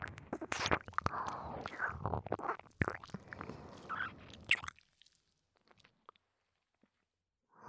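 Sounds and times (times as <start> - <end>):
ear licking ASMR sounds: 0.0 - 5.9.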